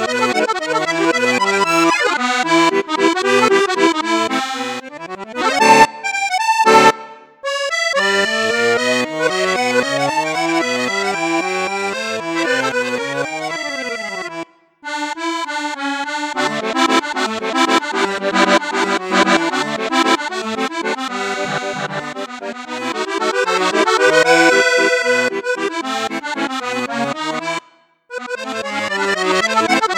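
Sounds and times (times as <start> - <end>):
Cavagnolo bal musette accordion with flute registers: 0.0 - 29.9.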